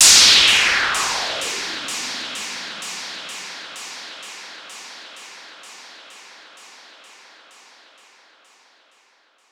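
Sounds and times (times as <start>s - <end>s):
downlifter effect: 0.0s - 2.8s.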